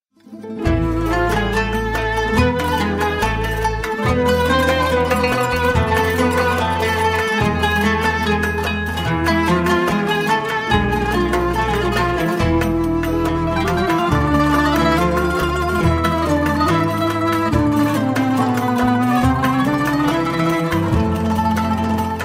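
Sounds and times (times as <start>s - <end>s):
Turkish art music: 0.3s - 22.2s.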